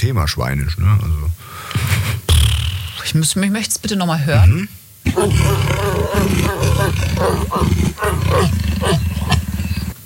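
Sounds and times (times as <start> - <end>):
speech: 0.0 - 2.2, 3.0 - 9.4
big cat's deep rasping growl: 5.1 - 10.0.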